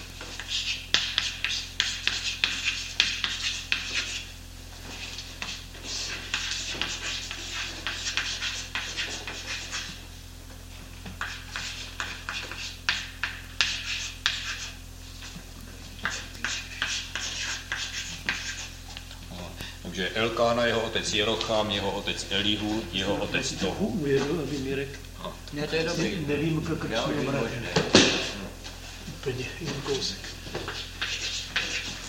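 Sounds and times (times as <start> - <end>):
handwriting strokes writing out a genealogy: 0.2 - 4.3, 4.9 - 10.0, 11.1 - 15.3, 16.0 - 18.8, 29.9 - 32.0
speech: 20.2 - 27.9, 29.2 - 30.3.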